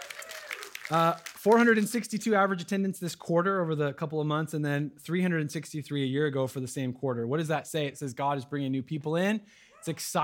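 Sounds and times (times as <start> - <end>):
audience applause and cheering: 0.0 - 1.9
speech: 0.9 - 10.2.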